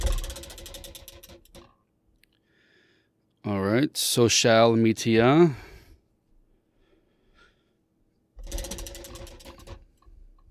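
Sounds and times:
prize wheel spinning with ticking pointer: 0.0s - 1.6s, 8.4s - 9.7s
speech: 3.7s - 5.6s.

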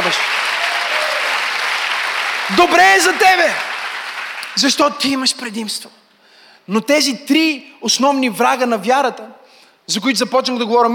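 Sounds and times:
audience applause: 0.0s - 4.8s
speech: 2.5s - 3.7s, 4.6s - 6.0s, 6.7s - 10.9s.

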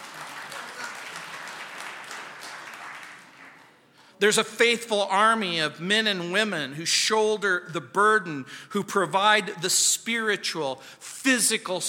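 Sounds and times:
crowd clapping: 0.0s - 3.8s
speech: 4.2s - 11.8s.

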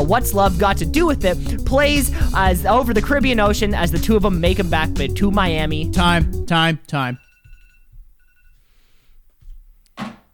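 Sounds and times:
speech: 0.1s - 7.3s
alarm ringing: 6.9s - 8.6s.

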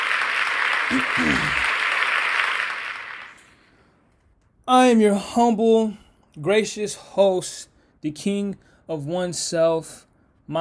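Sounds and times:
round of applause: 0.0s - 3.6s
person shouting: 0.9s - 1.6s
speech: 0.9s - 1.7s, 4.7s - 10.5s.

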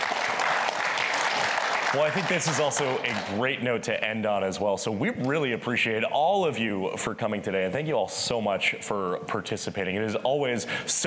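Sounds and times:
audience applause: 0.0s - 3.5s
speech: 1.9s - 11.0s.

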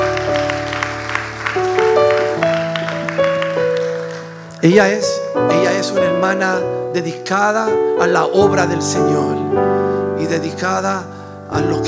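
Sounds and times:
applause: 0.0s - 4.6s
speech: 4.6s - 11.8s.

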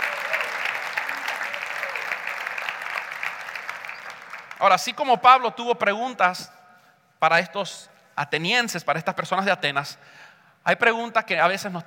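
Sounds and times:
audience applause: 0.0s - 4.7s
speech: 4.6s - 6.6s, 7.2s - 11.8s.

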